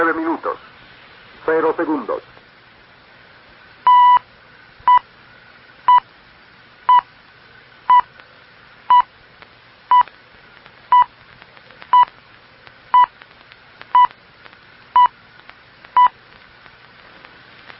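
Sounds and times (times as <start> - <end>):
speech: 0.0 - 0.8, 1.4 - 2.3
faint hiss: 0.0 - 17.7
radio time signal beeps from Ecuador's official time station HD2IOA in Guayaquil: 3.9 - 4.2.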